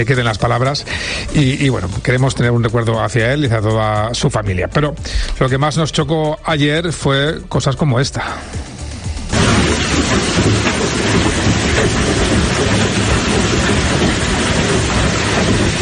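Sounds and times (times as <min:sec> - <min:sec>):
hail falling in Benaguasil: 0:00.0 - 0:04.1, 0:08.7 - 0:15.7
speech: 0:00.0 - 0:08.7.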